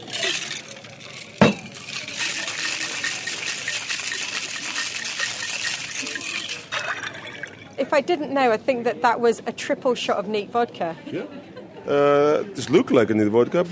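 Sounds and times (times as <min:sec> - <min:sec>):
ice rattling in a cocktail shaker: 0:00.0 - 0:07.8
speech: 0:07.8 - 0:13.7.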